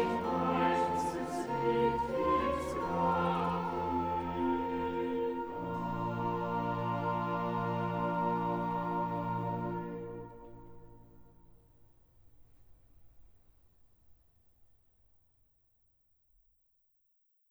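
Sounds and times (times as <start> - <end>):
choral cantata: 0.0 - 11.4.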